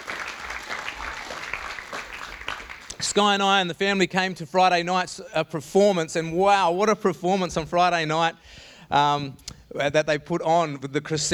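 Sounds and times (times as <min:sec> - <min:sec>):
round of applause from a crowd: 0:00.0 - 0:03.4
speech: 0:03.1 - 0:11.3.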